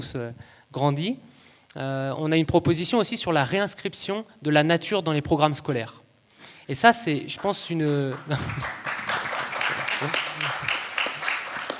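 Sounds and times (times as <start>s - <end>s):
speech: 0.0s - 6.0s, 6.7s - 8.9s, 10.0s - 10.8s
audience applause: 7.4s - 11.7s
laughter: 8.2s - 11.2s.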